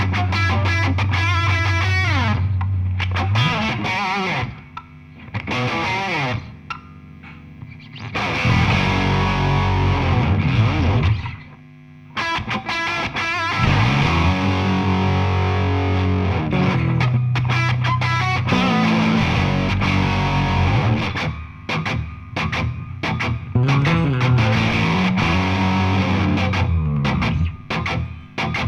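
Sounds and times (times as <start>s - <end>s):
bass in video game music: 0.0s - 12.2s, 13.5s - 28.6s
guitars in video game music: 0.0s - 28.6s.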